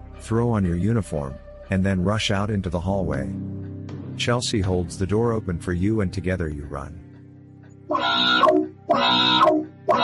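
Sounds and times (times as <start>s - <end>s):
speech: 0.2s - 3.5s, 4.2s - 7.0s
alarms blaring from speakers: 7.9s - 10.0s.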